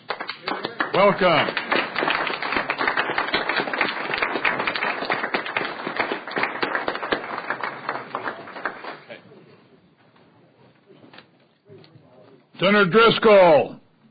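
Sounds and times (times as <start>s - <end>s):
applause welcoming students in a senate chamber: 0.0s - 9.2s
speech: 1.0s - 1.6s, 12.6s - 13.8s.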